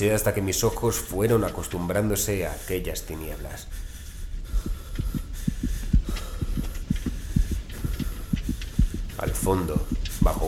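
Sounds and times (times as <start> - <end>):
speech: 0.0 - 3.9, 9.5 - 10.4
racing heartbeat: 3.8 - 10.4.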